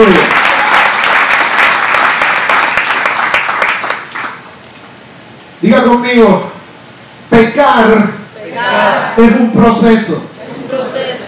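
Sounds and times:
speech: 0:00.0 - 0:00.4, 0:05.6 - 0:06.5, 0:07.6 - 0:11.2
audience applause: 0:00.0 - 0:04.6.

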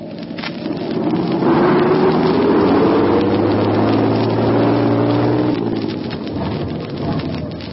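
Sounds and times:
vehicle engine revving hard plowing through a snow drift on a road: 0:00.8 - 0:07.0.

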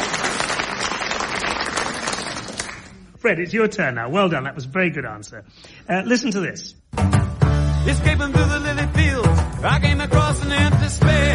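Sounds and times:
round of applause: 0:00.0 - 0:03.0
speech: 0:03.2 - 0:07.2, 0:07.8 - 0:11.3.

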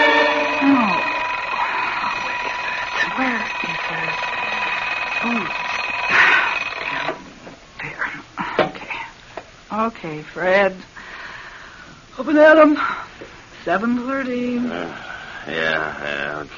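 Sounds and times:
alarm clock ringing with metallic jangle: 0:00.0 - 0:07.3
speech: 0:05.2 - 0:05.6, 0:09.8 - 0:11.0, 0:12.2 - 0:13.0, 0:13.6 - 0:16.5.

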